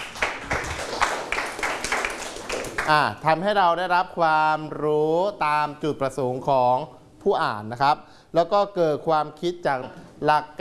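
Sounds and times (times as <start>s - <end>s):
classmates clapping hands: 0.0s - 3.1s
speech: 2.9s - 10.5s.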